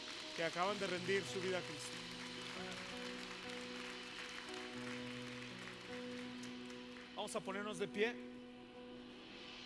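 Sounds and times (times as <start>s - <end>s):
crowd clapping: 0.0s - 7.4s
speech: 0.4s - 2.9s, 7.2s - 8.4s.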